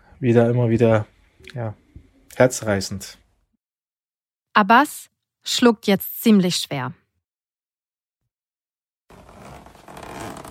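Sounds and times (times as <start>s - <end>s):
speech: 0.2s - 3.2s, 4.6s - 7.0s
suitcase being unzipped: 9.1s - 10.4s.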